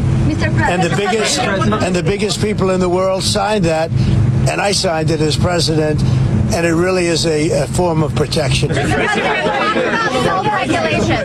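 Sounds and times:
laughter: 0.4 - 2.7, 8.5 - 11.2
speech: 0.4 - 11.2
reporters shouting questions over one another: 8.8 - 11.2.

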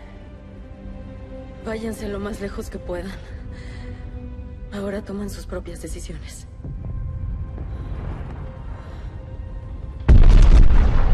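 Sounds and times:
speech: 1.6 - 3.8, 4.8 - 6.5
huge explosion at an air base: 10.1 - 11.1.

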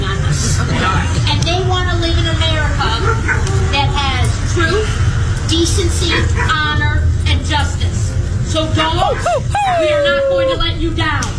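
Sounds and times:
murmuring voices: 0.0 - 11.3
dogs whimpering and yipping at a political rally: 2.8 - 4.0, 6.1 - 6.8, 9.0 - 10.6
speech: 8.6 - 11.3.

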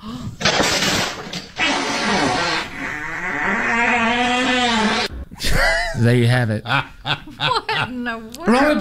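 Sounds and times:
chair collapsing: 0.4 - 5.3
long fart: 1.6 - 5.3
speech: 6.0 - 8.7.

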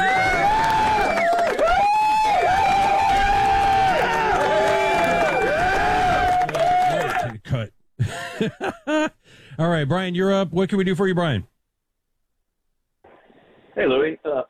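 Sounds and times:
dense wash of crowd clapping: 0.0 - 7.4
laughter: 8.0 - 9.2
speech: 9.6 - 11.5, 13.8 - 14.4.

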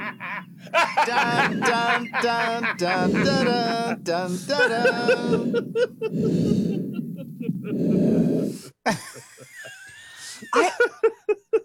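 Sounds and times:
laughter: 0.0 - 7.8, 8.9 - 11.6
heavy rasping breaths through a CPAP machine: 0.0 - 8.9, 10.0 - 10.6
speech: 1.0 - 9.2
squeaky wheezy snorts: 2.8 - 3.8, 4.8 - 8.9.

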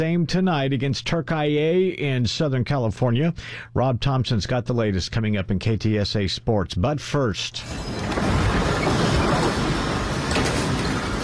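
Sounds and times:
speech: 0.0 - 8.4
powerful earthquake rumble in Venezuela: 7.6 - 11.2.

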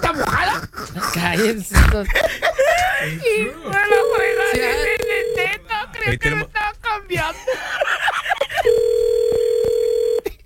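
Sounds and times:
laughter: 0.0 - 9.3
speech: 1.2 - 4.9, 6.1 - 7.4
telephone call ringing tone: 3.7 - 5.8, 8.6 - 10.4.

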